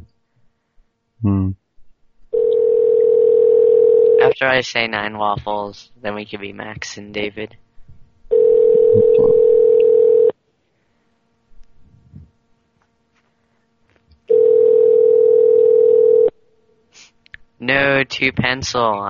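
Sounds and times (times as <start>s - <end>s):
speech: 1.2s - 1.6s, 4.3s - 7.6s, 17.7s - 19.0s
telephone ringback tone ringing unanswered: 2.4s - 4.4s, 8.3s - 10.3s, 14.3s - 16.3s.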